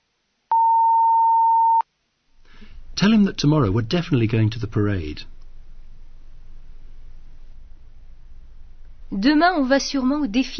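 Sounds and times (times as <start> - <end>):
answering machine beep: 0.5 - 1.8
speech: 3.0 - 5.3, 9.2 - 10.5.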